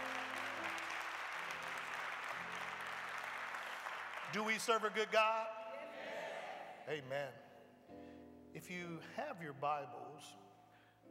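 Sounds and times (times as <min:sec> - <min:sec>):
audience applause: 0:00.0 - 0:05.4
speech: 0:04.3 - 0:05.6, 0:06.9 - 0:07.4, 0:08.5 - 0:10.4.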